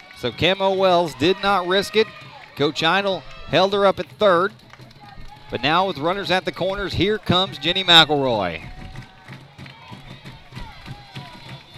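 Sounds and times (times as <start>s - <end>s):
fans cheering at a softball stadium: 0.0s - 11.7s
scattered shouts and voices: 0.0s - 11.7s
speech: 0.2s - 4.7s, 5.5s - 8.7s.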